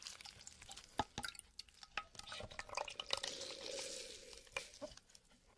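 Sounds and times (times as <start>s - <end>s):
water pouring into a glass: 1.2s - 4.9s.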